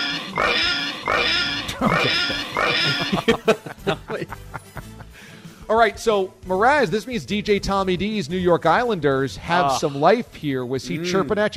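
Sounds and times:
pig squeal sound effect: 0.0s - 3.3s
laughter: 1.7s - 5.2s
speech: 1.8s - 4.0s, 5.8s - 11.5s.

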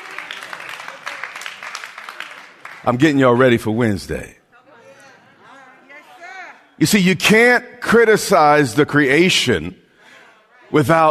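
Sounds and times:
scattered clapping from the audience: 0.0s - 3.2s
speech: 2.8s - 4.4s, 6.8s - 9.8s, 10.7s - 11.0s.

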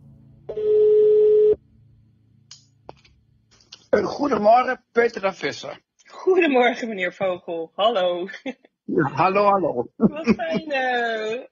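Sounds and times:
telephone ringing tone: 0.5s - 1.6s
speech: 4.0s - 11.5s.

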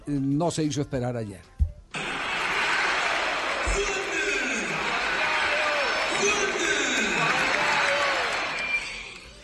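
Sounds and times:
speech: 0.1s - 1.5s
football fans cheering after a goal: 2.0s - 9.2s.

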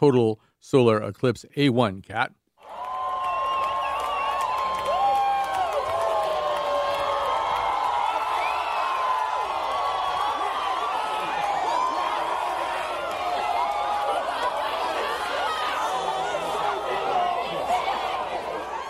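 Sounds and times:
speech: 0.0s - 2.4s
applause: 2.6s - 16.1s
crowd cheering at total solar eclipse: 2.6s - 18.8s.

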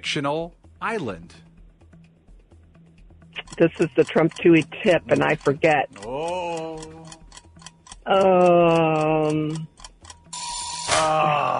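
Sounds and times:
speech: 0.0s - 1.4s, 3.6s - 6.9s, 8.0s - 9.7s, 11.0s - 11.5s
quiz timer ticking: 2.9s - 10.9s
loud flat quiz buzzer: 10.3s - 11.1s.

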